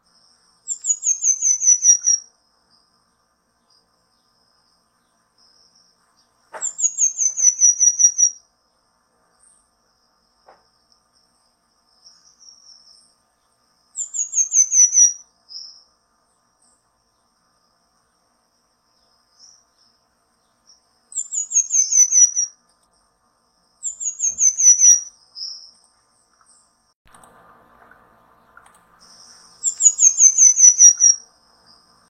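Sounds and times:
Pin-tailed manakin song: 0:00.7 - 0:02.2, 0:05.0 - 0:08.4, 0:14.0 - 0:15.8, 0:20.5 - 0:22.5, 0:23.8 - 0:25.8, 0:28.0 - 0:31.8.

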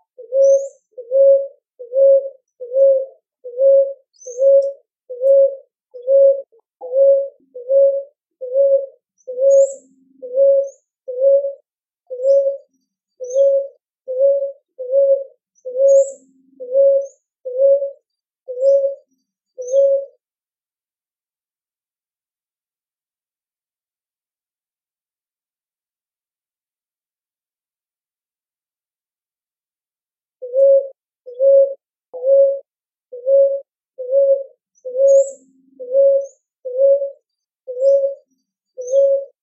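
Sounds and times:
Rolinha roxa calling: 0:00.0 - 0:19.0, 0:19.6 - 0:20.2, 0:30.4 - 0:38.2, 0:38.8 - 0:39.4.

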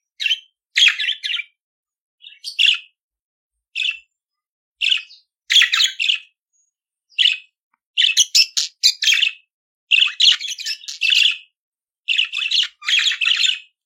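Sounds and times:
budgerigar chattering song with squeaky chirps and buzzing warbles: 0:00.2 - 0:01.6, 0:02.2 - 0:03.0, 0:04.8 - 0:06.3, 0:07.2 - 0:11.5, 0:12.1 - 0:13.8.

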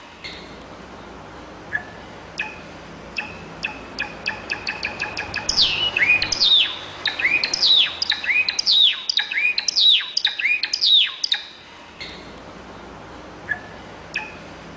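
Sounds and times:
calafate bird singing: 0:01.7 - 0:12.2, 0:13.5 - 0:14.5.

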